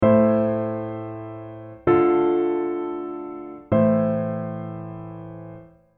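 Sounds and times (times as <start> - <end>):
chords: 0.0 - 5.7.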